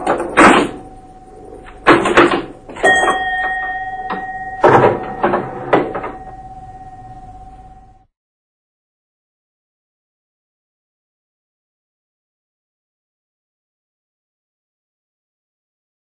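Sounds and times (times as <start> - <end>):
pinball machine being played: 0.0 - 7.3.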